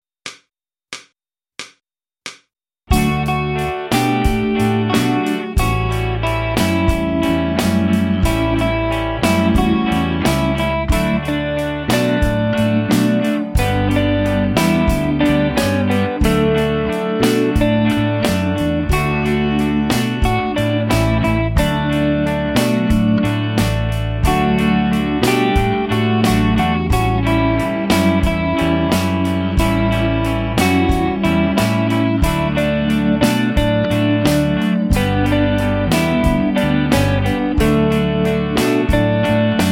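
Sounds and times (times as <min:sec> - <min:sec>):
guitar playing: 0:02.9 - 0:39.7.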